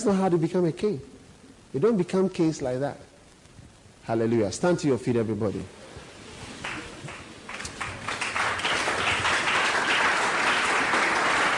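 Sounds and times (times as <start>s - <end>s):
speech: 0.0s - 1.1s, 1.7s - 3.1s, 4.0s - 5.8s
audience applauding: 6.6s - 11.5s.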